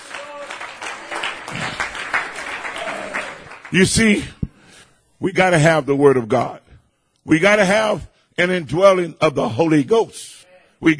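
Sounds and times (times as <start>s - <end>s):
audience clapping hands: 0.0s - 4.4s
speech: 3.7s - 4.4s, 5.2s - 6.6s, 7.2s - 10.9s.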